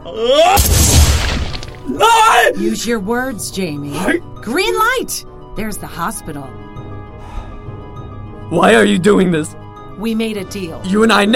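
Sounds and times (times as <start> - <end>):
speech: 0.0 - 0.9, 1.9 - 6.6, 8.5 - 11.3
gunshot from a gun jammed into a man's mouth: 0.6 - 1.8.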